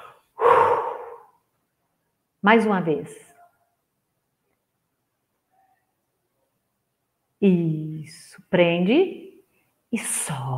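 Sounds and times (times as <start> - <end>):
deep breath during a guided breathing exercise: 0.0 - 1.4
speech: 2.4 - 3.3, 7.4 - 9.2, 9.9 - 10.5.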